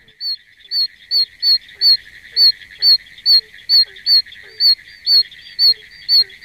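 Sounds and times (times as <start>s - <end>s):
frog piercing high-pitched squeaking call: 0.0s - 6.4s.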